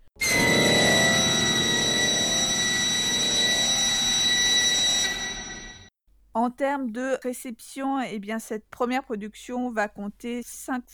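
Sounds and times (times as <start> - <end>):
factory siren high-pitched whistle: 0.2 - 5.9
speech: 6.4 - 10.9.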